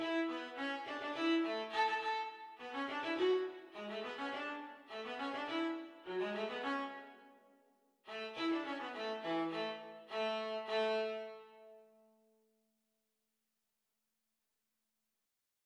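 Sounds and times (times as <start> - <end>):
viola duet: 0.0 - 7.2, 8.1 - 11.8.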